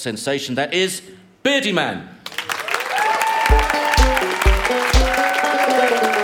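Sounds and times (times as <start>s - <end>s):
speech: 0.0s - 2.2s
audience applause: 2.3s - 6.2s.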